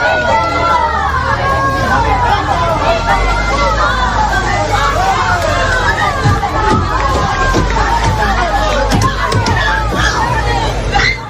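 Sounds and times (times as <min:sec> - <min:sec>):
agitated crowd shouting: 0:00.0 - 0:11.2.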